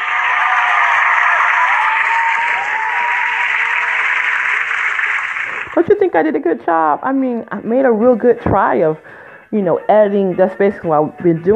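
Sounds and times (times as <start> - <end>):
audience clapping: 0.0 - 6.1
speech: 5.8 - 11.5.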